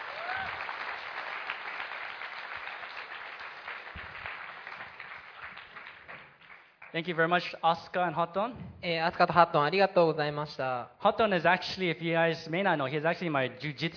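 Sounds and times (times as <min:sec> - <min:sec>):
crowd clapping: 0:00.0 - 0:07.4
speech: 0:06.9 - 0:13.9.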